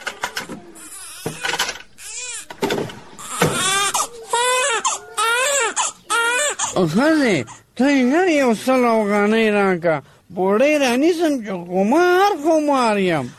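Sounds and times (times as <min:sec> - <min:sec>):
baby crying: 0:00.5 - 0:07.6
speech: 0:06.8 - 0:13.3.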